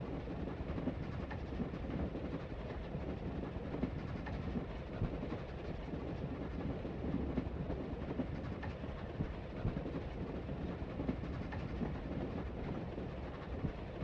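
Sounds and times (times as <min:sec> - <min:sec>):
steam railroad train: 0:00.0 - 0:14.0.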